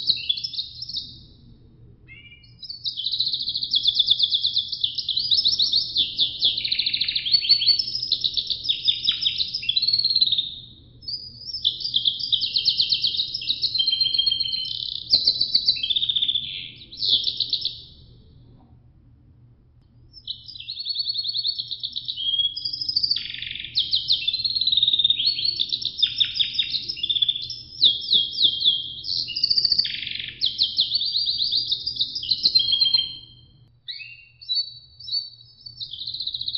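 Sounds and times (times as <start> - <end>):
Russian canary singing trills: 0.0 - 1.3, 2.1 - 18.2, 20.1 - 36.5
low steady hum: 0.8 - 2.8, 17.8 - 20.2.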